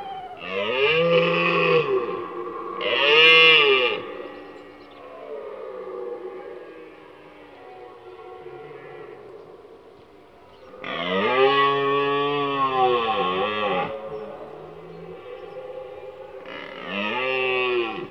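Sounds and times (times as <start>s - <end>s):
deer bellowing: 0.0s - 4.4s, 10.8s - 18.0s.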